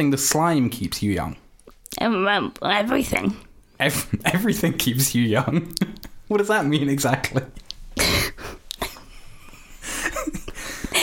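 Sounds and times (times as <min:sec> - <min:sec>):
speech: 0:00.0 - 0:07.6
whooping cough coughing fit: 0:08.0 - 0:09.0.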